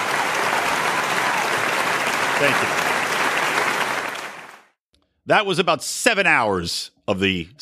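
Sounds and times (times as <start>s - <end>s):
audience applause: 0.0s - 4.8s
speech: 2.4s - 2.9s, 5.3s - 7.6s.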